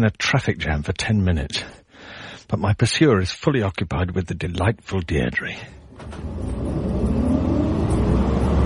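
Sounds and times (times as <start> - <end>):
speech: 0.0 - 6.6
heavy city bus engine pulling away: 5.5 - 8.6.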